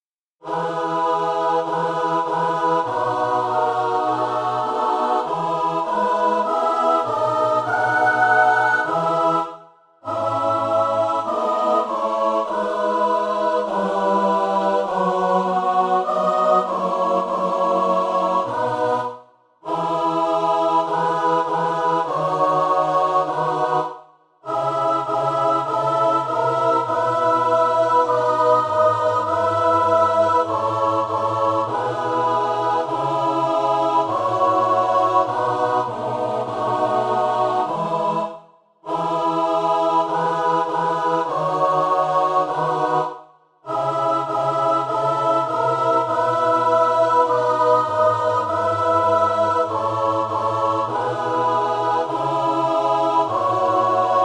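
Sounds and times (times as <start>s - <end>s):
MIDI psalm tune: 0.5s - 54.2s.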